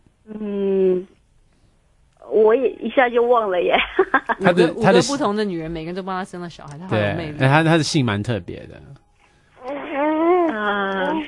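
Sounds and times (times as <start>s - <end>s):
speech: 0.4s - 0.6s, 2.5s - 9.0s
two-month-old infant crying: 9.6s - 11.2s.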